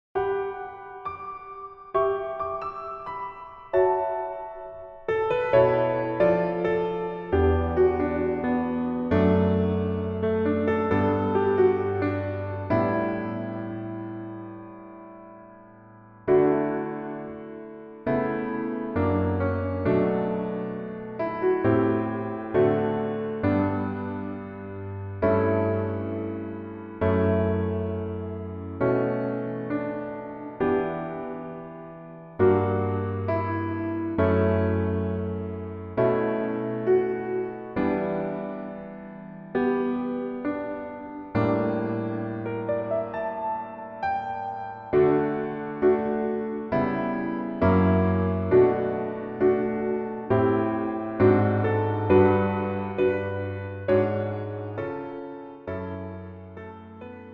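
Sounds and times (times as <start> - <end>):
piano accompaniment track: 0.0 - 57.3.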